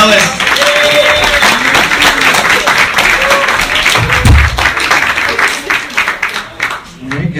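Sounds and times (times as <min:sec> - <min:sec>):
audience applause for a comedian: 0:00.0 - 0:07.2
whoops: 0:00.5 - 0:04.5.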